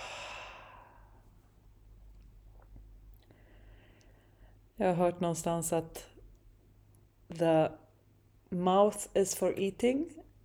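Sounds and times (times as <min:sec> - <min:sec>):
soft breathy open-mouth exhale: 0:00.0 - 0:01.2
speech: 0:04.8 - 0:06.1, 0:07.3 - 0:07.8, 0:08.5 - 0:10.3.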